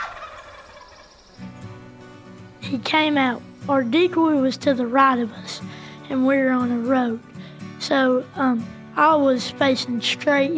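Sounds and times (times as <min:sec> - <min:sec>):
turkey gobbling: 0:00.0 - 0:01.4
speech: 0:02.7 - 0:10.5.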